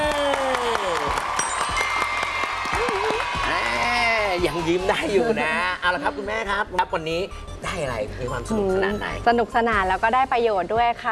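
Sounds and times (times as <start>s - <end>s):
audience applause at a Thai children's event: 0.0s - 4.7s
speech: 4.4s - 11.1s.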